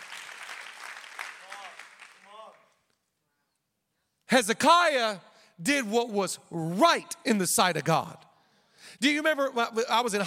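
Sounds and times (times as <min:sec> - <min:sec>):
audience clapping: 0:00.0 - 0:03.0
speech: 0:04.3 - 0:08.2, 0:08.8 - 0:10.2.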